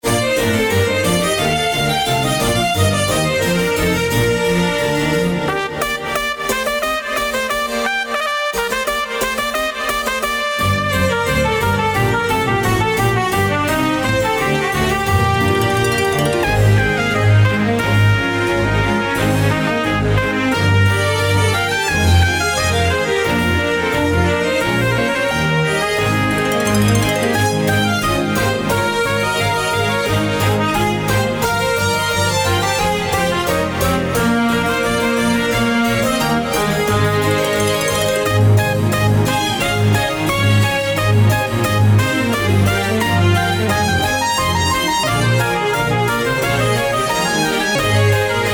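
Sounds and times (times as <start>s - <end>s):
baroque music: 0.0s - 48.5s.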